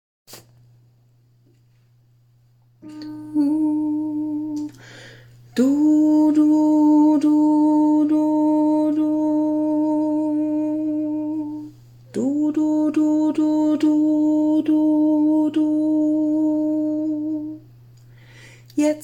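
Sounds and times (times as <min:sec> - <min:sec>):
alto voice singing a verse: 0:02.8 - 0:17.7.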